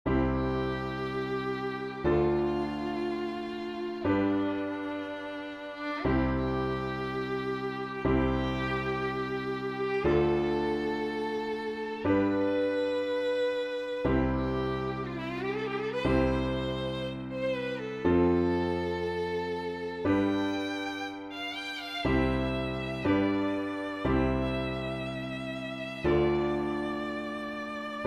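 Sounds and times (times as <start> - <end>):
violin: 0.0 - 28.0.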